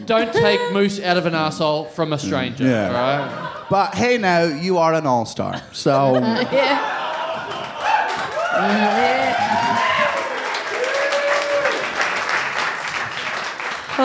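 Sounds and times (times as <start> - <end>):
laughter: 0.0 - 1.0, 2.2 - 4.4, 5.4 - 10.4
speech: 0.0 - 7.0, 8.6 - 9.5
audience applause: 6.6 - 14.0.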